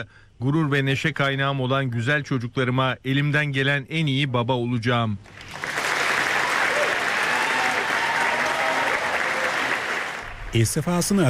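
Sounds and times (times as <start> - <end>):
speech: 0.0 - 5.6, 10.5 - 11.2
audience applauding: 5.3 - 10.6.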